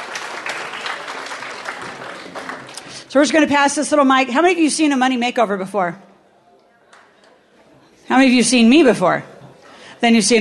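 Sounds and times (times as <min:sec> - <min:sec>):
audience applause at a live event welcoming a volunteer: 0:00.0 - 0:03.1
speech: 0:03.1 - 0:06.1, 0:08.1 - 0:09.3, 0:10.0 - 0:10.4.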